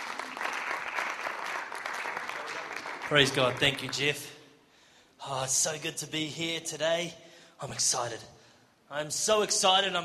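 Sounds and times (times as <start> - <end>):
audience applauding a guest stepping up onto a platform: 0.0 - 4.2
speech: 3.1 - 4.4, 5.3 - 10.0.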